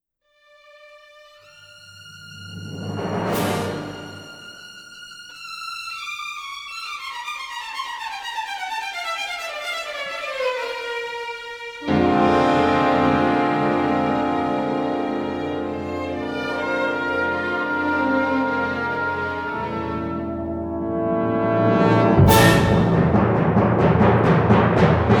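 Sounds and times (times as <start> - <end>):
symphonic tango music: 1.4 - 25.1.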